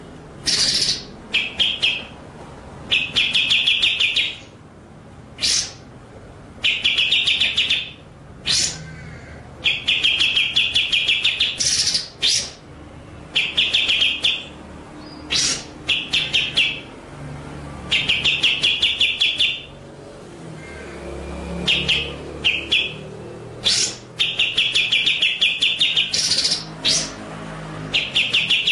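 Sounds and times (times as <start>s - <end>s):
white-rumped shama song: 0.4s - 2.2s, 2.9s - 4.5s, 5.4s - 5.8s, 6.6s - 8.8s, 9.6s - 12.6s, 13.4s - 16.9s, 17.9s - 19.7s, 21.6s - 27.2s, 27.9s - 28.6s.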